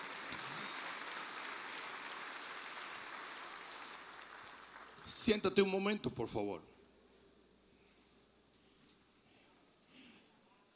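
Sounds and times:
audience applause: 0.0 - 5.1
speech: 5.1 - 6.7.

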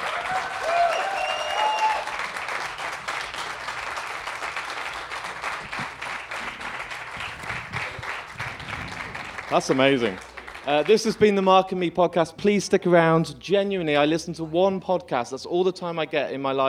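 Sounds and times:
faint whistles and cheers: 0.0 - 3.1
festival audience applause: 0.0 - 11.3
speech: 9.5 - 16.6.

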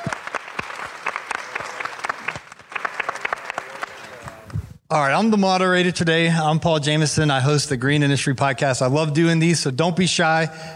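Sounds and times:
audience applause: 0.0 - 4.6
speech: 4.9 - 10.7.

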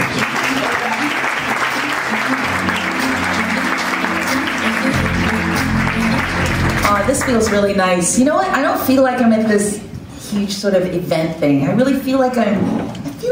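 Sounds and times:
audience applause: 0.0 - 8.0
speech: 7.3 - 13.2.

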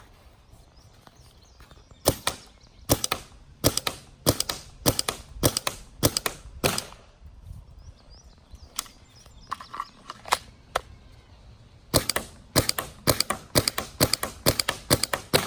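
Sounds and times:
gunshots from a gun fired from a loaded magazine: 2.1 - 7.0, 11.9 - 15.4.

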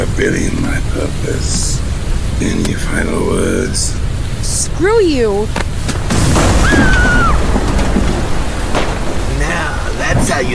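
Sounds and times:
speech: 0.2 - 7.3, 9.5 - 10.5
lightning strike with thunderous roar: 6.0 - 10.5.

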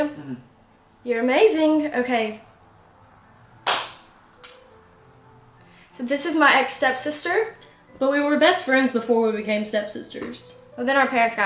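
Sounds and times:
speech: 0.0 - 2.5, 6.0 - 11.4
single hand clap for audio sync: 3.6 - 4.6
soft snap: 3.7 - 4.6.

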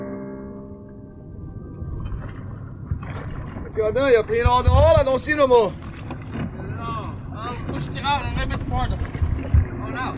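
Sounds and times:
wind buffeting on the open ocean around an offshore shrimp boat: 1.2 - 10.1
speech: 3.8 - 5.9, 7.8 - 9.2.

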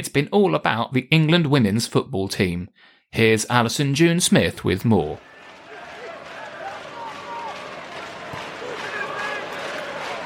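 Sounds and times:
speech: 0.1 - 5.3
crowd cheering: 5.2 - 10.2.

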